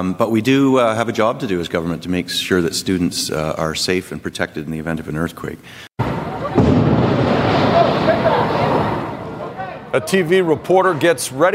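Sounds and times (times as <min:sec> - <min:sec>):
speech: 0:00.0 - 0:05.9, 0:10.0 - 0:11.5
manhole explosion in downtown Manhattan New York: 0:06.0 - 0:09.5.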